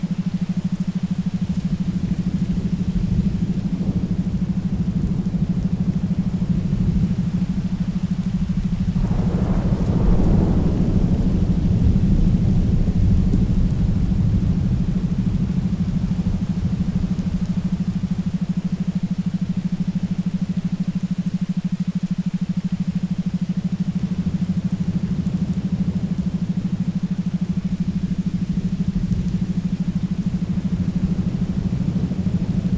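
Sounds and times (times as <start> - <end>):
thunderstorm: 0.0 - 32.7.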